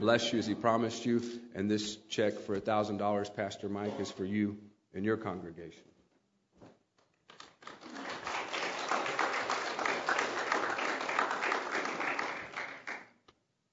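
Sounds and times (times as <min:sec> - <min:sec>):
speech: 0:00.0 - 0:05.9
crowd applause: 0:07.6 - 0:13.0.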